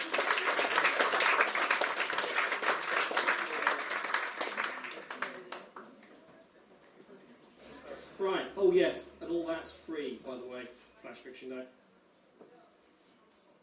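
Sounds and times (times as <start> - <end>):
crowd applause: 0.0 - 6.1
speech: 8.7 - 11.8.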